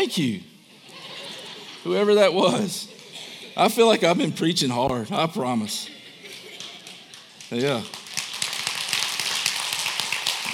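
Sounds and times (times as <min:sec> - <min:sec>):
speech: 0:00.0 - 0:00.5, 0:01.8 - 0:02.9, 0:03.6 - 0:06.0, 0:07.5 - 0:08.0
laughter: 0:00.8 - 0:04.0, 0:05.8 - 0:07.4
lone person clapping: 0:06.6 - 0:10.5.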